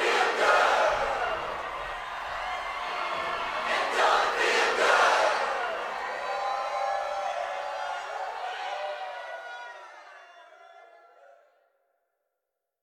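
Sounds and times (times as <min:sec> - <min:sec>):
crowd: 0:00.0 - 0:12.1.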